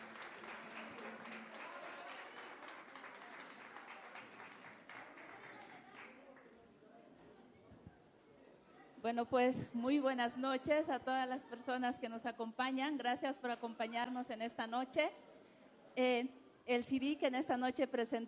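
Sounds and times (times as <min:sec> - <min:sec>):
audience applause: 0:00.0 - 0:06.4
speech: 0:09.0 - 0:15.2, 0:16.0 - 0:18.2.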